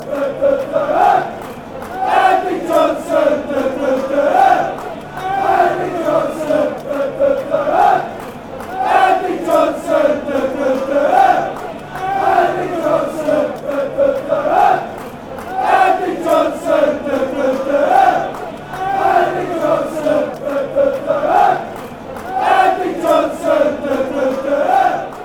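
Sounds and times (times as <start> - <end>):
fan chants: 0.0 - 25.2.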